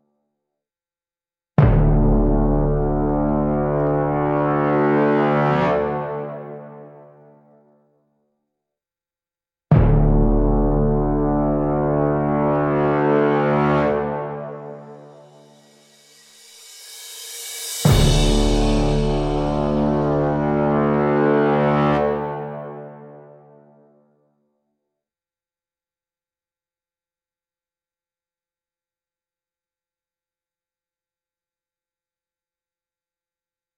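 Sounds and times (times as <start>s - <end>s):
heroic Soviet march music: 1.6s - 7.0s, 9.8s - 23.4s.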